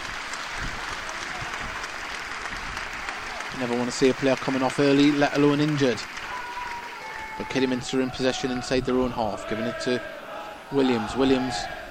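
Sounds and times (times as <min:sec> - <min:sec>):
stadium crowd applause: 0:00.0 - 0:08.8
speech: 0:03.6 - 0:06.2, 0:07.4 - 0:11.8.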